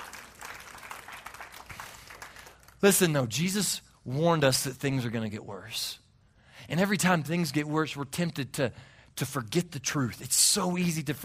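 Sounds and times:
audience clapping: 0.0 - 3.2
speech: 2.8 - 6.0, 6.6 - 11.2.

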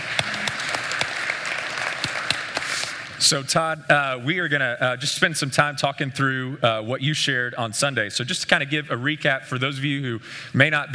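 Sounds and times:
audience applause welcoming a speaker at a morning gathering: 0.0 - 3.2
speech: 3.2 - 10.9.

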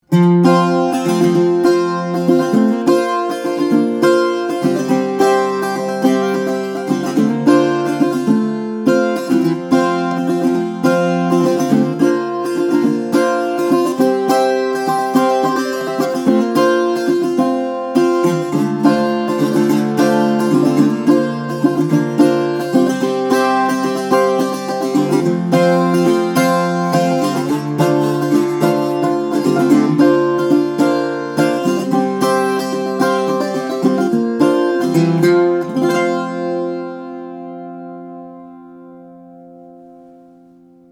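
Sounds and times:
steel-string flattop guitar: 0.0 - 40.8.

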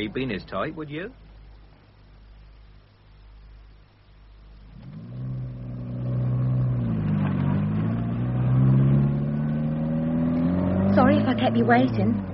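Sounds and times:
speech: 0.0 - 1.3, 11.5 - 12.3
car engine driving up: 4.4 - 12.3.

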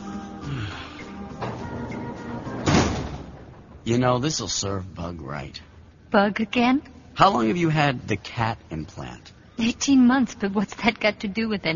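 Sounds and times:
low steady room hum: 0.0 - 11.7
door shutting with a thud: 1.4 - 3.9
speech: 3.9 - 11.7.

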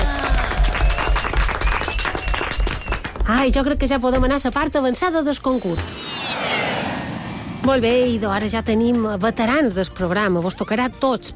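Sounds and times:
loud applause: 0.0 - 3.1
speech: 3.3 - 6.2, 7.6 - 11.3.

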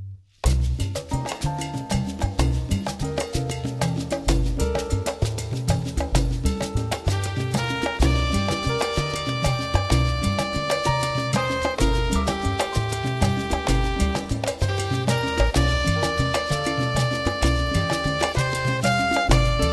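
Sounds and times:
mongo drum: 0.5 - 19.7.

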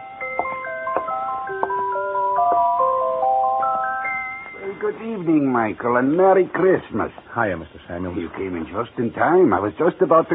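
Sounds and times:
music box on a counter playing: 0.0 - 5.0
speech: 4.8 - 10.3.

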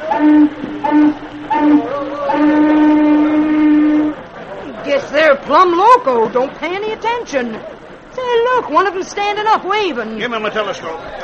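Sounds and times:
steamboat warning whistle: 0.0 - 4.3
speech: 0.2 - 1.2, 5.5 - 11.2.

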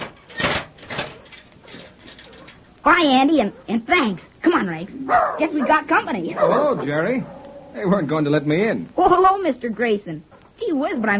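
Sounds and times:
cage door being shut: 0.0 - 2.6
speech: 2.8 - 11.1.

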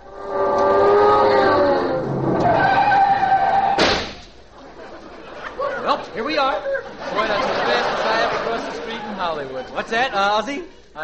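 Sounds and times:
car driving off: 0.0 - 3.7
laughter: 4.5 - 10.3
speech: 9.4 - 11.0.

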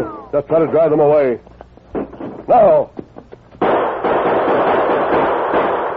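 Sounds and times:
speech: 0.3 - 1.5, 2.5 - 3.0
gunfire exchange: 3.6 - 5.9.

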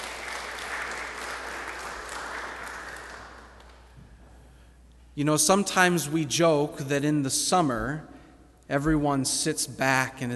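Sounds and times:
audience clapping hands: 0.0 - 4.0
speech: 5.2 - 8.1, 8.7 - 10.3.

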